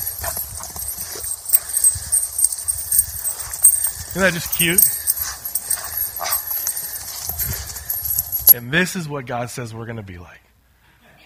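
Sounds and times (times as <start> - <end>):
calf hooves clattering leaping out of a stall: 0.0 - 8.6
speech: 4.2 - 5.0, 8.5 - 10.4.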